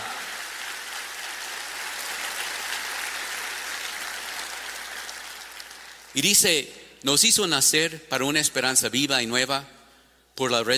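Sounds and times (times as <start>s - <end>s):
loud audience applause: 0.0s - 6.1s
speech: 6.1s - 9.8s, 10.4s - 10.7s.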